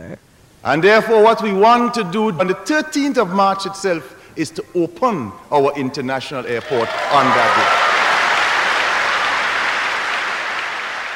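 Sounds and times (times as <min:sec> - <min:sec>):
speech: 0:00.1 - 0:07.8
audience cheering and applauding: 0:06.5 - 0:11.1.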